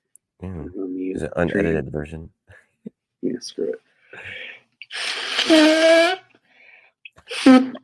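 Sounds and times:
speech: 0.4 - 2.4, 3.4 - 6.2, 7.4 - 7.8
nose blowing: 4.8 - 6.4, 7.2 - 7.8.

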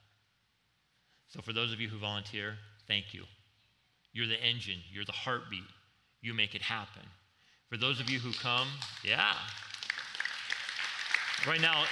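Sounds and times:
speech: 1.3 - 3.4, 4.1 - 9.7, 11.4 - 11.9
audience clapping: 7.9 - 11.9.

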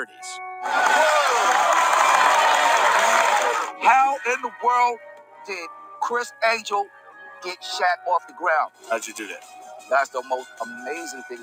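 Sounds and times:
speech: 0.0 - 1.2, 3.8 - 11.4
small crowd cheering and shouting: 0.6 - 4.2.

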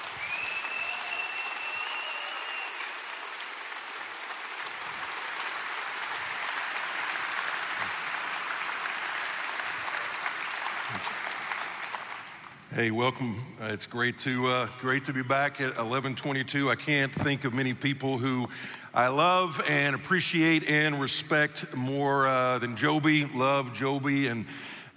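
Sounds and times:
standing congregation applauding to welcome a guest pastor: 0.0 - 12.7
speech: 12.8 - 24.9.

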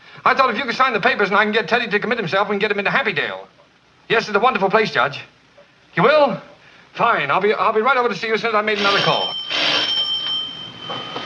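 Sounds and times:
speech: 0.2 - 5.3, 6.0 - 9.4
doorbell buzzing: 8.7 - 11.2.

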